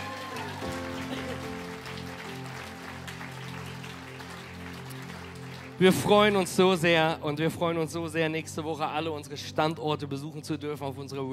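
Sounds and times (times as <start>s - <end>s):
audience applause: 0.0s - 6.6s
speech: 5.8s - 11.3s.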